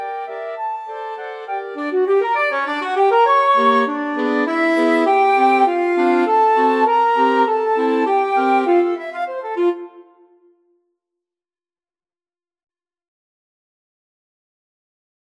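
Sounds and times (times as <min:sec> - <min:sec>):
flexible mixed ensemble of 4 players: 0:00.0 - 0:10.4.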